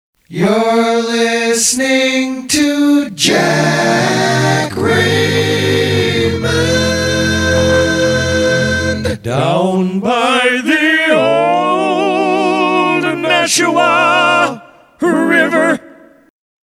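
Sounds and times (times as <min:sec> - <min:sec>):
seventies-style a cappella rock singing: 0:00.3 - 0:16.2.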